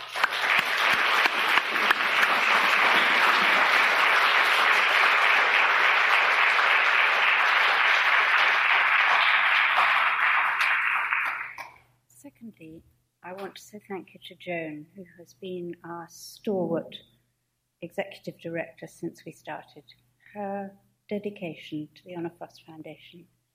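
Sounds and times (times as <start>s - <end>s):
crowd applause: 0.0s - 11.8s
speech: 13.7s - 17.2s, 17.8s - 23.4s.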